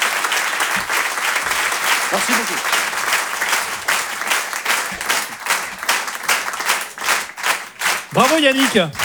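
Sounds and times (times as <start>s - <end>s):
audience applause: 0.0s - 9.0s
laughter: 0.1s - 6.5s, 8.1s - 9.0s
speech: 2.1s - 2.8s, 8.2s - 9.0s.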